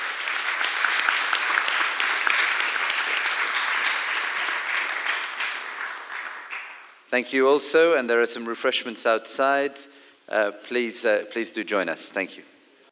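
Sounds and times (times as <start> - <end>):
crowd applauding: 0.0 - 7.1
speech: 7.1 - 12.5.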